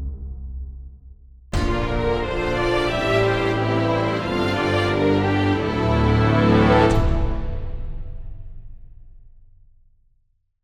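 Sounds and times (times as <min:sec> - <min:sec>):
game item acquisition fanfare: 0:01.5 - 0:07.9.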